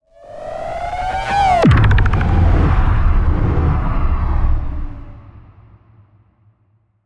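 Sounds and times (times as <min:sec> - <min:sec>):
low warped tone: 0:00.1 - 0:04.3.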